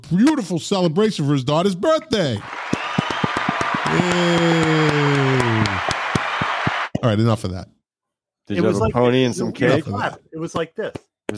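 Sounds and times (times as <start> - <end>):
speech: 0.0 - 2.7, 3.9 - 4.9, 7.0 - 7.8, 8.5 - 11.3
hands clapping: 2.4 - 7.0.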